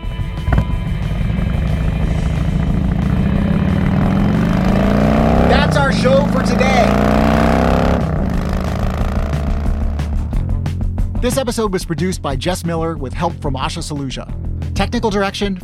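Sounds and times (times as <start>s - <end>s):
Harley-Davidson motorcycle engine: 0.0s - 11.0s
speech: 6.0s - 7.2s, 11.2s - 15.6s.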